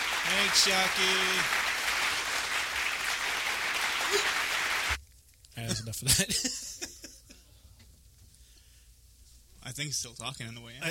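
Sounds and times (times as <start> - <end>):
round of applause: 0.0 - 5.0
speech: 0.4 - 1.6, 4.1 - 4.4, 5.6 - 6.9, 9.7 - 10.9.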